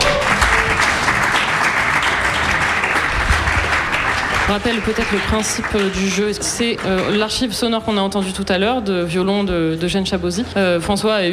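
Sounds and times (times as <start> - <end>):
audience applause: 0.0 - 7.4
speech: 4.5 - 11.3.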